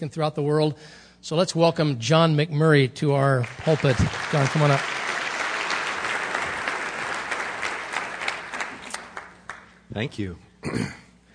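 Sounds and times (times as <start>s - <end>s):
speech: 0.0s - 5.0s, 10.0s - 11.0s
audience clapping: 3.3s - 9.9s.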